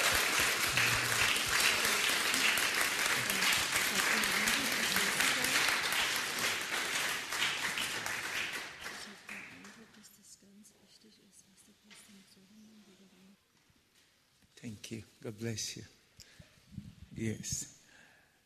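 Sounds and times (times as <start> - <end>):
scattered voices and cheers: 0.0 - 5.5
audience clapping in praise: 0.0 - 10.0
speech: 14.9 - 16.0, 17.2 - 17.7.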